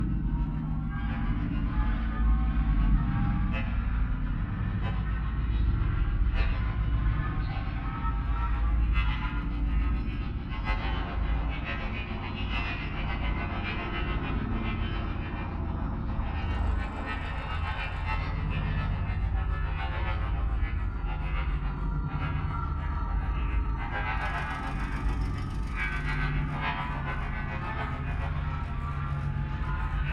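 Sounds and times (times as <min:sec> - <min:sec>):
abstract ambient sounds mix: 0:00.0 - 0:30.1.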